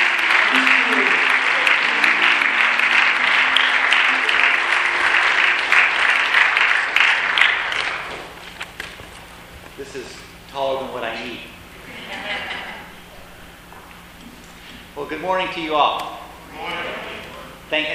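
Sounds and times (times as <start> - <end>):
congregation at a morning service applauding a guest speaker: 0.0 - 8.6
laughter: 11.8 - 13.1
speech: 15.3 - 16.1, 17.7 - 17.9.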